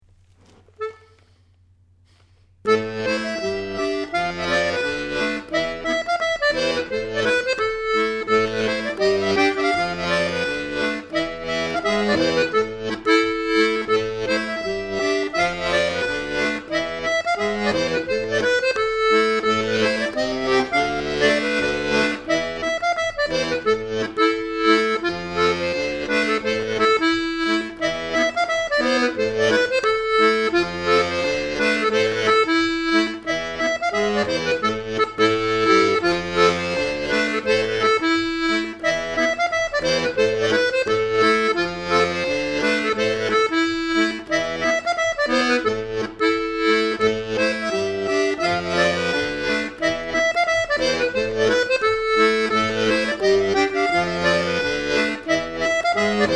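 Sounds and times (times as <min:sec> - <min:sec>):
Scottish accordion music: 0:00.5 - 0:01.4, 0:02.1 - 0:56.3.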